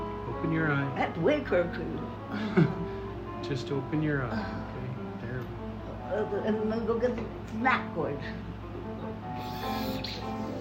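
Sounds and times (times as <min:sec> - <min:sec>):
low hum: 0:00.0 - 0:10.5
speech: 0:00.4 - 0:04.9, 0:06.1 - 0:08.5
saline nasal spray pump puffing: 0:09.2 - 0:10.5.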